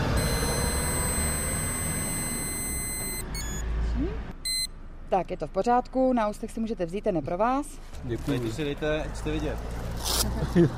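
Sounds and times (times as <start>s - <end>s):
breathalyzer tone: 0.2s - 3.6s, 4.5s - 4.8s
speech: 5.1s - 10.7s.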